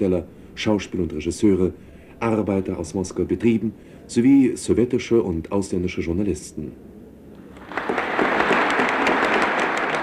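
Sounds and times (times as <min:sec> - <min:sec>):
speech: 0:00.0 - 0:06.9
audience stormy applause in the Sverdlov Hall of the Moscow Kremlin: 0:07.6 - 0:10.0.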